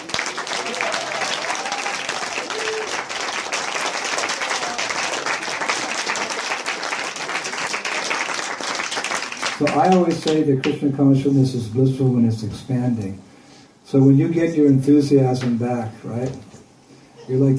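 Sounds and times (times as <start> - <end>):
audience applause: 0.0 - 10.8
speech: 9.6 - 13.3, 13.9 - 16.5, 17.3 - 17.5.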